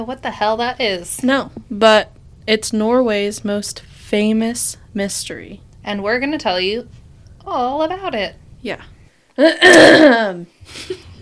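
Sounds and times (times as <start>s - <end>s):
speech: 0.0s - 11.1s
woman clearing her throat: 9.4s - 10.4s.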